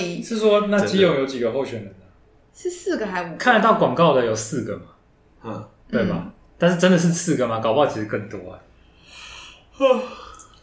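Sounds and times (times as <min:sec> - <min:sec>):
speech: 0:00.0 - 0:02.0, 0:02.6 - 0:08.7, 0:09.8 - 0:10.2
person yawning: 0:09.2 - 0:10.6.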